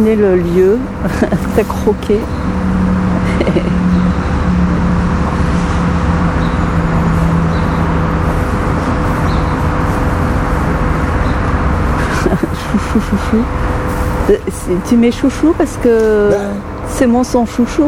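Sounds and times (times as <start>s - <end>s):
speech: 0.0s - 2.5s, 3.4s - 3.8s, 13.0s - 13.7s, 14.3s - 17.8s
highway traffic roaring beneath a motorway footbridge: 0.0s - 17.8s
laughter: 0.0s - 17.8s.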